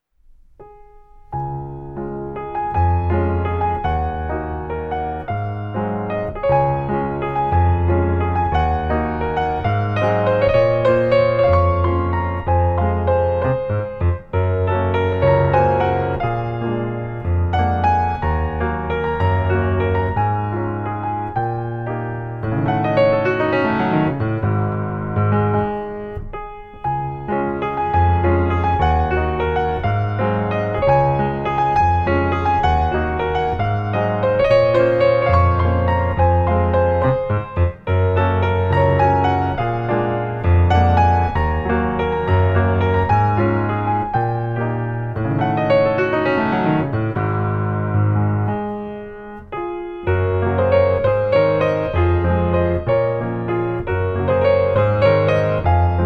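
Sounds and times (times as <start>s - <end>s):
christmas piano music: 0.0s - 56.0s.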